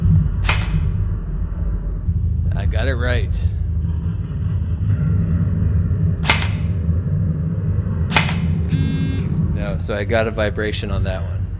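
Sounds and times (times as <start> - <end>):
steady low rumble: 0.0 - 11.5
shot from a mock M4 assault rifle during a shock-belt challenge: 0.4 - 1.0, 6.2 - 6.8, 8.1 - 8.6
speech: 2.7 - 3.6, 9.8 - 11.4.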